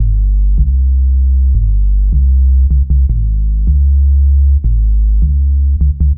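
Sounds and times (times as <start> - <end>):
futurist drum and bass music: 0.0 - 6.1.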